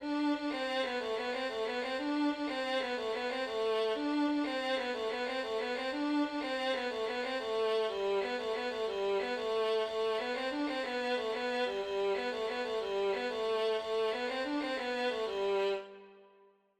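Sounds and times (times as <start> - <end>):
polka for three voices: 0.0 - 15.6.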